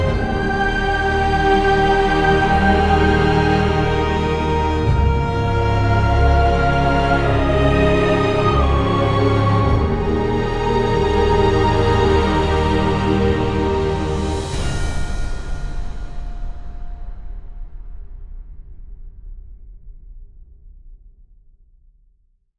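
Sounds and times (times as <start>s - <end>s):
epic heroic dramatic orchestral music: 0.0s - 17.9s.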